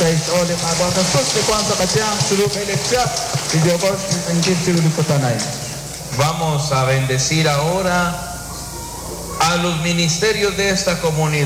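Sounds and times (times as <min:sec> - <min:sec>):
audience applauding: 0:00.0 - 0:06.2
speech: 0:00.5 - 0:05.6, 0:06.2 - 0:08.3, 0:09.5 - 0:11.4.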